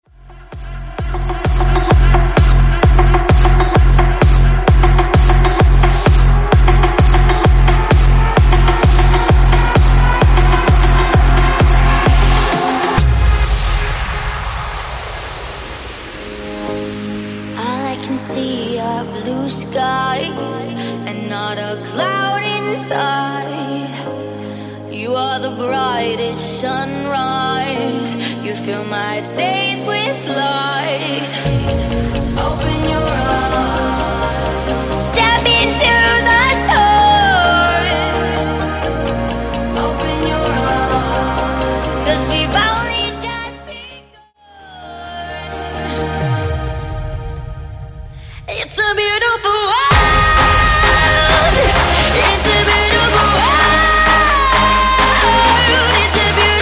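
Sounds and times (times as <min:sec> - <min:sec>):
EDM banger: 0:00.0 - 0:24.4, 0:25.2 - 0:56.6.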